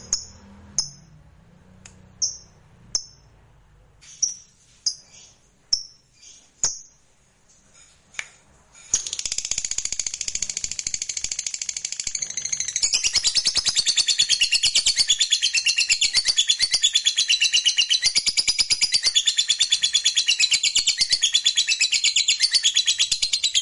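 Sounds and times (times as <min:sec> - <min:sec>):
lovebird chirping and trilling: 0:00.0 - 0:01.2, 0:02.2 - 0:03.3, 0:04.0 - 0:07.1, 0:08.8 - 0:23.5.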